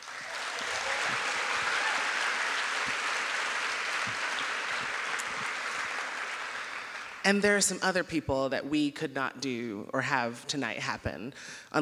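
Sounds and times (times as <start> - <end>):
audience applause: 0.0 - 7.2
speech: 7.3 - 11.8.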